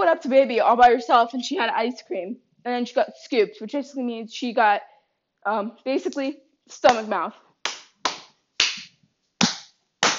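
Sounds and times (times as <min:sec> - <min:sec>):
speech: 0:00.1 - 0:07.4
hands clapping: 0:06.9 - 0:10.1.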